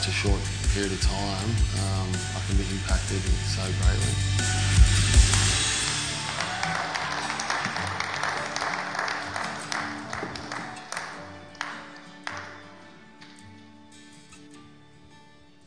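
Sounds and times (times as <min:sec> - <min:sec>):
speech: 0:00.0 - 0:05.3
audience applause: 0:05.3 - 0:12.8.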